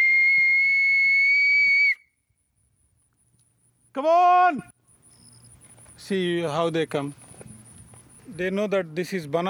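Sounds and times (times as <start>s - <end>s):
high-pitched whistle calling cows for feeding: 0.0s - 2.2s
speech: 4.0s - 4.7s, 6.0s - 7.2s, 8.4s - 9.4s.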